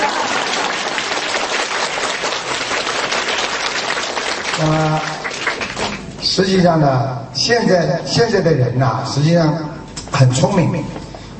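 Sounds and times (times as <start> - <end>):
audience applause: 0.0 - 6.2
speech: 6.4 - 11.0.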